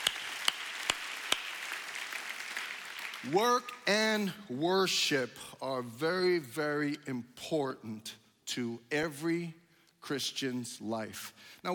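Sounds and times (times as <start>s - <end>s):
audience clapping: 0.0s - 3.8s
speech: 3.2s - 11.7s.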